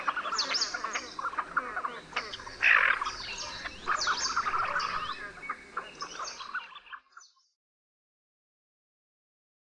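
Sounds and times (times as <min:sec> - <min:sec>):
czernica bird sounds: 0:00.0 - 0:07.6.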